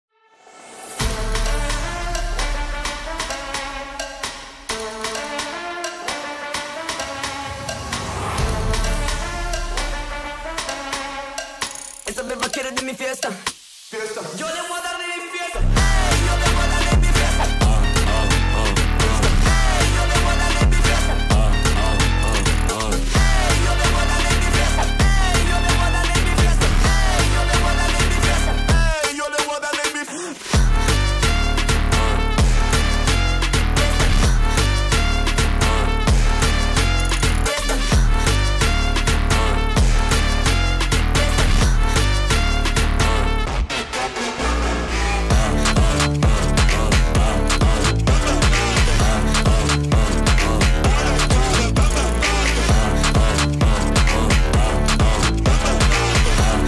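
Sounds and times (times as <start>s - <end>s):
phonk music: 0.8s - 56.6s.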